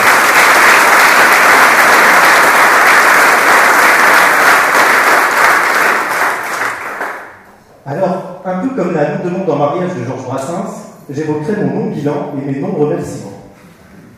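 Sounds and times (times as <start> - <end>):
audience applause: 0.0 - 7.5
speech: 8.7 - 13.4.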